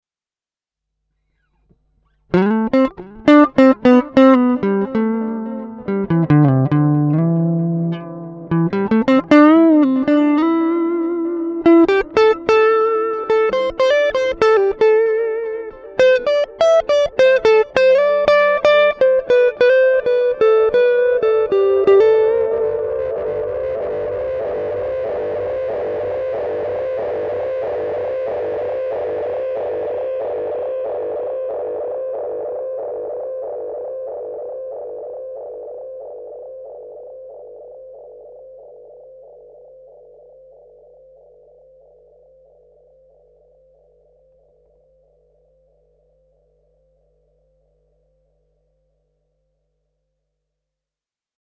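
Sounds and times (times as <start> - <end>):
tape echo effect: 2.3 - 37.4.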